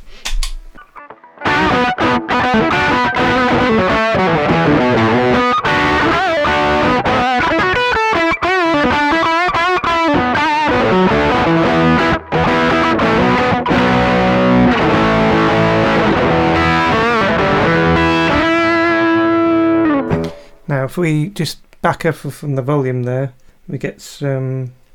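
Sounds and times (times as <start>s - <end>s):
electric guitar with humbuckers through an Analog Man Beano Boost treble booster playing distorted riff: 0.8s - 20.7s
speech: 21.0s - 24.8s.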